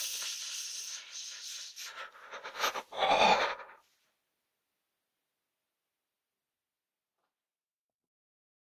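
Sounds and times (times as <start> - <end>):
person shivering from cold: 1.9 - 3.8.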